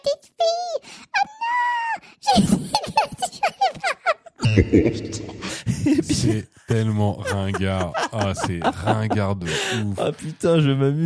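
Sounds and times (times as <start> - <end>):
speech: 0.0 - 0.7, 4.6 - 11.0
laughter: 2.3 - 10.7
monster voice effect: 4.4 - 10.6.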